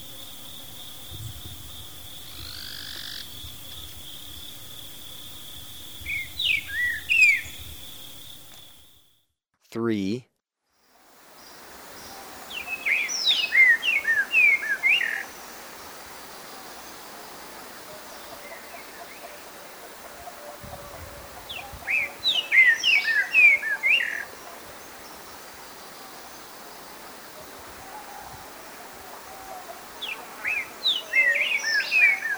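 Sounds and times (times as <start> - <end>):
Streaked Saltator calling in Ecuador: 0.0 - 8.9, 11.5 - 32.3.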